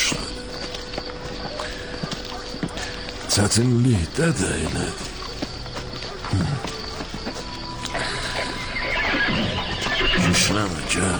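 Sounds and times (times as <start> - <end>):
clip-clop of horse hooves: 0.0 - 11.1
speech: 3.3 - 5.1, 6.3 - 6.8, 10.4 - 11.1
horse neighing: 7.9 - 11.1.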